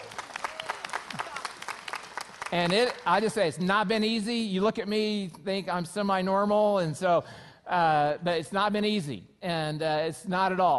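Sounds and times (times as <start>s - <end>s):
audience cheering: 0.0s - 2.0s
audience clapping: 0.0s - 3.5s
speech: 2.5s - 10.7s.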